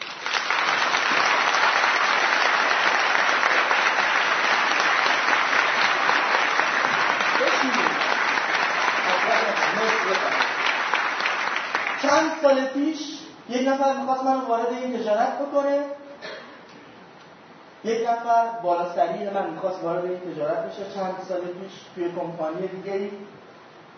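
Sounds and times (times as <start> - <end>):
audience applause: 0.0 - 12.4
speech: 12.4 - 16.0, 17.8 - 23.4.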